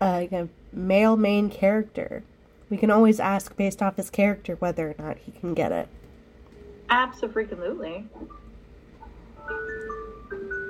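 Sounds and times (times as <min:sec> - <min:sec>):
speech: 0:00.0 - 0:06.0, 0:06.9 - 0:08.4
electronic alarm chiming: 0:09.4 - 0:10.6.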